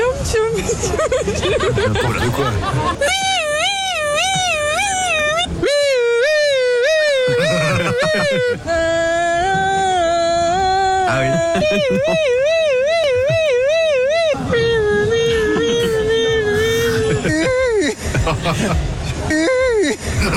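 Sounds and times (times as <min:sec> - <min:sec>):
chatter: 0:00.0 - 0:05.8, 0:07.1 - 0:20.3
speech: 0:00.3 - 0:03.4, 0:08.1 - 0:09.8, 0:11.1 - 0:12.5, 0:18.2 - 0:20.3
people chuckling: 0:00.6 - 0:04.9, 0:07.1 - 0:08.8, 0:11.1 - 0:20.3
people imitating a police siren: 0:02.0 - 0:08.6, 0:11.0 - 0:17.9.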